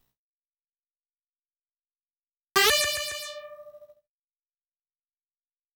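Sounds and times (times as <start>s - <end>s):
sound effects: 2.6s - 3.9s.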